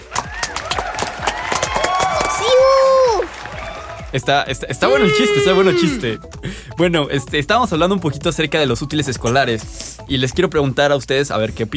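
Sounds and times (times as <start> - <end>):
applause after a joke: 0.0 - 4.7
speech: 4.1 - 11.7.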